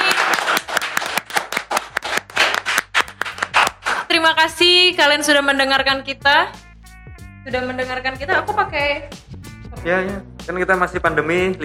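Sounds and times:
audience clapping for the guest: 0.0 - 4.1
speech: 4.2 - 6.6, 7.4 - 9.2, 9.8 - 11.6.

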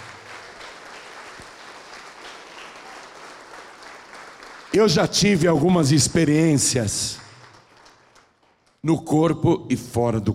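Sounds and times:
audience applause: 0.0 - 8.8
speech: 4.7 - 7.2, 8.8 - 10.3.

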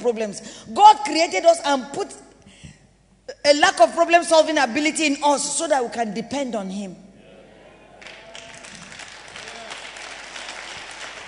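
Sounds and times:
speech: 0.0 - 2.3, 3.4 - 7.0
audience clapping: 7.9 - 11.2.

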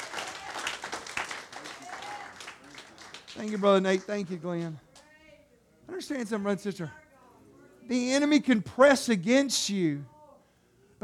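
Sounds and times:
audience clapping: 0.0 - 5.1
speech: 3.4 - 4.9, 5.9 - 7.0, 7.9 - 10.1.

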